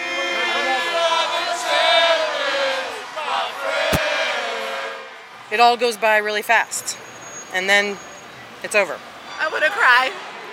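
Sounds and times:
crowd yelling and cheering at a parade: 0.0 - 6.2
speech: 5.5 - 10.3.

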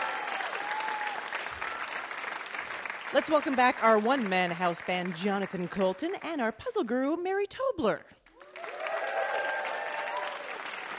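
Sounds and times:
cheering whoops: 0.0 - 2.2, 8.4 - 10.9
studio audience applause at a live puzzle game show: 0.0 - 6.2, 8.3 - 10.9
speech: 3.1 - 8.2.

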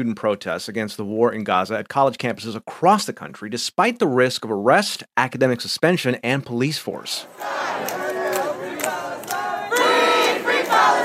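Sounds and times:
speech: 0.0 - 7.9
student protesters chanting at an encampment on Columbia University's campus: 7.2 - 11.0.

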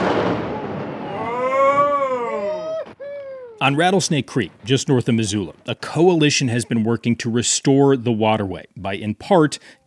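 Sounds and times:
explosion demolishing an old creek dam: 0.0 - 3.0, 3.8 - 6.3
speech: 3.6 - 9.8.

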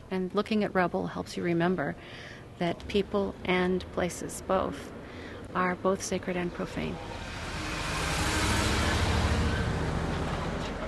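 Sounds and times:
speech: 0.1 - 7.3
flatbed truck pulling away with a load of marble: 7.0 - 10.8.

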